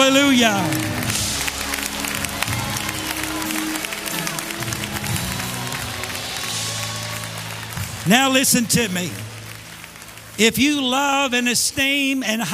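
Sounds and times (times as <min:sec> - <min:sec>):
audience clapping: 0:00.0 - 0:12.5
speech: 0:00.1 - 0:01.0, 0:08.0 - 0:09.2, 0:10.4 - 0:12.5.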